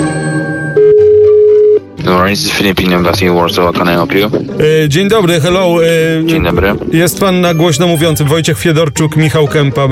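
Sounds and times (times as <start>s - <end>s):
telephone tone on a call to the Philippine embassy: 0.0s - 1.9s
music: 0.0s - 9.8s
speech: 2.3s - 9.8s.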